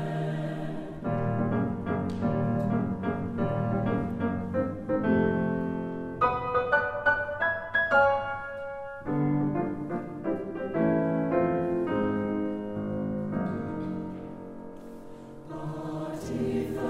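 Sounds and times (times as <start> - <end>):
SSATB choir singing: 0.0 - 1.7, 15.4 - 16.8
piano accompanying choir: 0.0 - 16.8.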